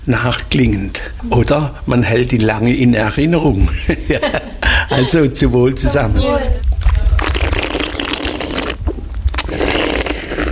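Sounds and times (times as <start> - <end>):
speech: 0.0 - 6.6
laughter: 3.6 - 6.1
wine slurped during a tasting: 7.1 - 10.5.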